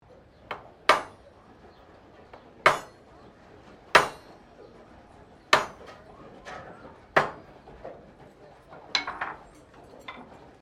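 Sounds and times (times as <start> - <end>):
blacksmith hammering: 0.4 - 1.3, 2.3 - 3.2, 3.8 - 4.4, 5.5 - 6.0, 7.1 - 7.5, 8.9 - 9.5.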